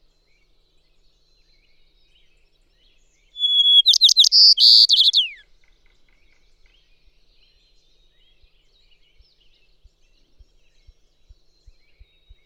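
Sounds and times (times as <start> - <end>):
White-crowned Sparrow calling: 3.4 - 5.4.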